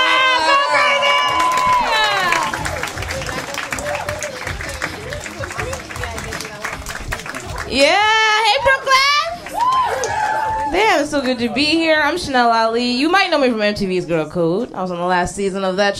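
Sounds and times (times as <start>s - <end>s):
live audience applause: 0.0s - 11.5s
speech: 11.2s - 15.9s.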